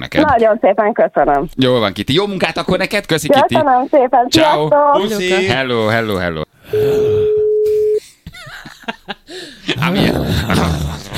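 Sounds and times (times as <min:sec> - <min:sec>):
speech: 0:00.0 - 0:07.8, 0:09.8 - 0:11.1
telephone call ringing: 0:06.7 - 0:08.0
laughter: 0:08.3 - 0:11.1.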